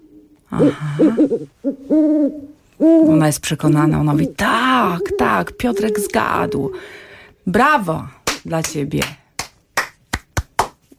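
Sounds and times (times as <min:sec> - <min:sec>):
owl hooting: 0:00.0 - 0:07.2
speech: 0:00.5 - 0:09.2.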